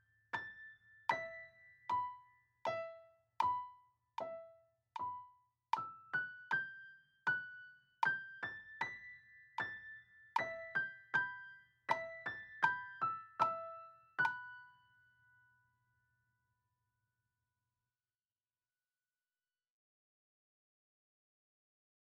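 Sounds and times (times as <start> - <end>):
slow piano: 0.0 - 15.7.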